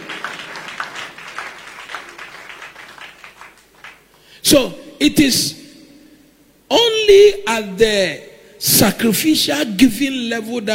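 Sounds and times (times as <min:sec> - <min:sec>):
audience clapping hands: 0:00.0 - 0:04.3
speech: 0:04.5 - 0:05.6, 0:07.1 - 0:10.7.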